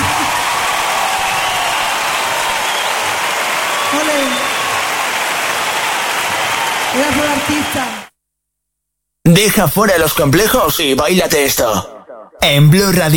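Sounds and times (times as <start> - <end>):
audience applause: 0.0 - 8.1
speech: 7.3 - 8.0, 9.3 - 13.1.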